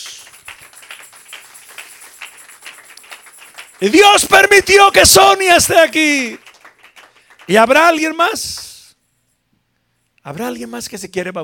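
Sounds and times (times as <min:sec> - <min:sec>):
audience applause: 0:00.0 - 0:08.4
speech: 0:03.8 - 0:06.4, 0:07.5 - 0:08.6, 0:10.3 - 0:11.4.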